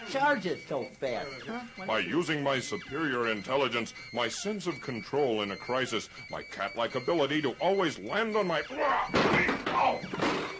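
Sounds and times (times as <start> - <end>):
speech: 0.1 - 10.5
thumps and crashing clatter of tripping over a potted plant: 9.1 - 10.5.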